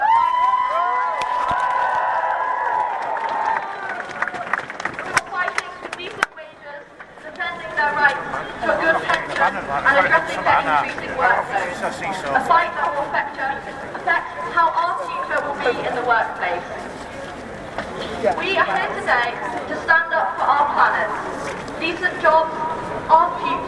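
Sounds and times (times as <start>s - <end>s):
crowd cheering loudly: 0.0s - 5.9s
scattered clapping: 1.1s - 6.4s
people chattering: 3.6s - 23.6s.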